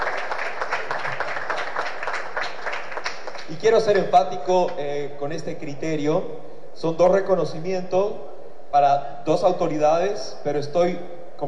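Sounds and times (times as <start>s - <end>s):
audience applause: 0.0s - 3.6s
speech: 3.5s - 11.4s.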